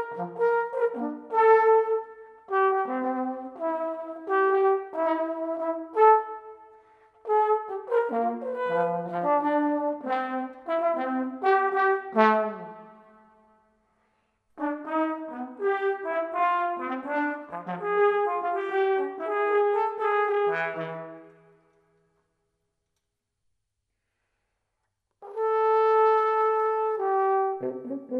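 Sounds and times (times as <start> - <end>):
trombone: 0.0 - 6.6, 7.3 - 13.2, 14.6 - 21.3, 25.2 - 28.1.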